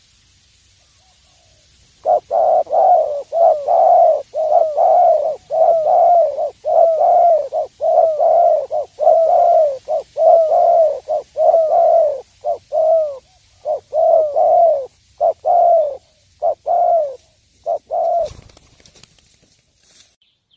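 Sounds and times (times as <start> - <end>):
spotted dove cooing: 1.0 - 18.7
scraping rustle: 18.2 - 20.2.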